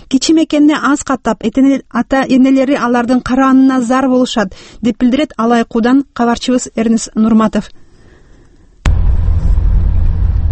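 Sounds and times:
speech: 0:00.1 - 0:07.8
UAZ vehicle engine and road rumble on a remote mountain road: 0:08.9 - 0:10.5.

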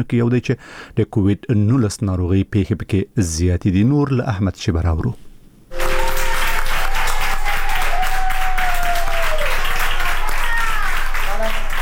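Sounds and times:
speech: 0:00.0 - 0:05.2
doctors and nurses in Madrid applauding a recovered centenarian woman: 0:05.7 - 0:11.7.

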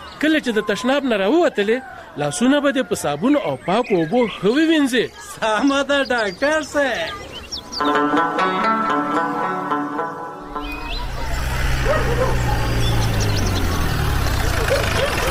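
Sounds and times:
speech: 0:00.2 - 0:09.4
steady tonal sounds: 0:09.4 - 0:12.8
car arriving, engine idling: 0:10.5 - 0:15.3.

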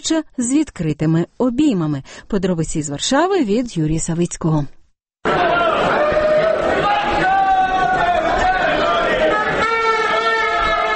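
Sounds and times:
speech: 0:00.0 - 0:06.2
multilingual city crowd hubbub of many voices: 0:05.2 - 0:10.9.

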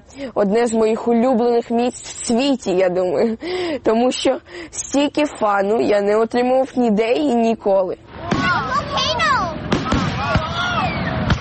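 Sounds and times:
speech: 0:00.1 - 0:08.1
festive fireworks bursting in Toronto: 0:08.1 - 0:11.3.

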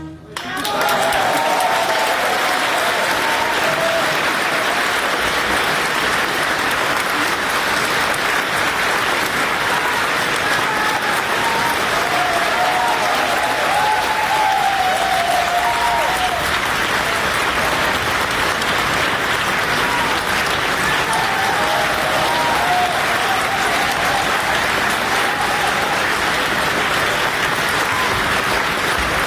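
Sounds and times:
audience applauding continuously: 0:00.3 - 0:29.2.

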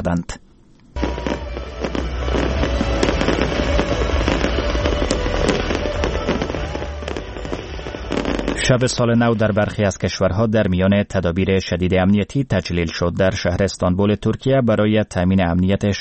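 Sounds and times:
speech: 0:00.0 - 0:00.4, 0:08.7 - 0:15.9
fireworks exploding: 0:01.0 - 0:09.0.

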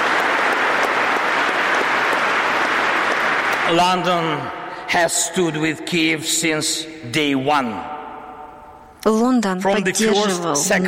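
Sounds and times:
audience applause: 0:00.0 - 0:04.6
speech: 0:03.7 - 0:08.0, 0:09.0 - 0:10.8.

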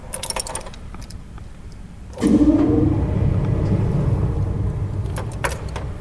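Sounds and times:
pipe organ blower motor starting up: 0:02.2 - 0:06.0.

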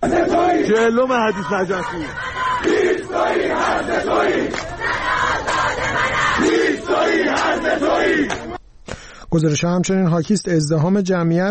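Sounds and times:
speech: 0:00.0 - 0:04.9, 0:09.3 - 0:11.4
protesters chanting slogans: 0:00.0 - 0:08.6.

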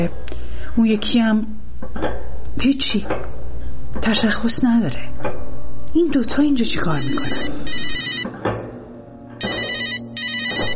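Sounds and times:
speech: 0:00.0 - 0:05.4, 0:06.0 - 0:07.9
low hum: 0:00.0 - 0:10.7
phone ringing: 0:06.9 - 0:08.3, 0:09.4 - 0:10.7.

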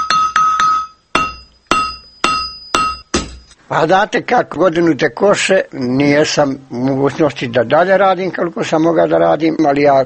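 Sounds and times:
hammer striking an anvil in a workshop: 0:00.0 - 0:03.6
speech: 0:03.7 - 0:10.0.

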